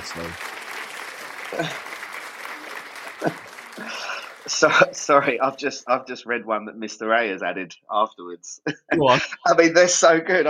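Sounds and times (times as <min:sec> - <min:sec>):
clapping sound effect: 0:00.0 - 0:05.4
speech: 0:00.1 - 0:00.5, 0:01.5 - 0:01.9, 0:03.2 - 0:03.4, 0:04.6 - 0:10.4
laughter: 0:01.3 - 0:05.8, 0:08.6 - 0:09.5.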